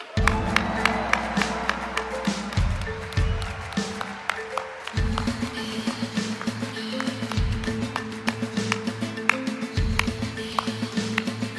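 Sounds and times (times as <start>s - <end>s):
audience applause: 0.0s - 11.4s.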